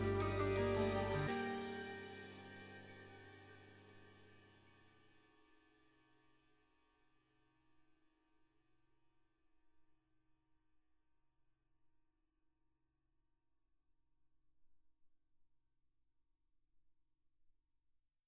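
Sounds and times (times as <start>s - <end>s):
Paiste 2002 22-inch ride cymbal: 0.0s - 4.1s.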